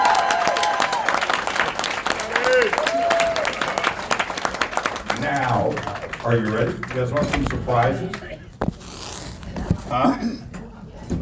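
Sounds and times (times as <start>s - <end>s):
audience applause greeting a speaker on stage at the Conscious Life Expo: 0.0s - 8.2s
speech: 6.2s - 8.3s, 9.9s - 10.5s.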